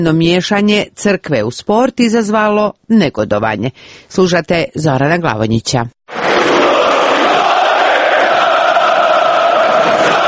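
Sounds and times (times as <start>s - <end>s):
speech: 0.0s - 6.0s
football fans chanting a terrace song at the stadium: 6.1s - 10.2s.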